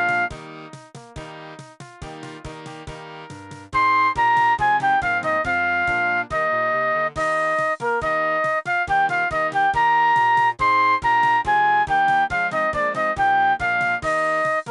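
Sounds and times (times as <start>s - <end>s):
flute: 0.0s - 0.4s, 3.7s - 14.6s.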